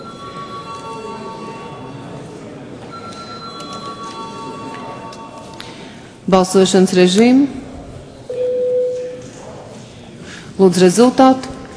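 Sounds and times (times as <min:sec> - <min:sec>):
parliament voting bell ringing: 0:00.0 - 0:02.2, 0:02.9 - 0:05.8
murmuring voices: 0:00.0 - 0:06.2, 0:07.5 - 0:10.6
speech: 0:06.3 - 0:07.6, 0:10.6 - 0:11.5.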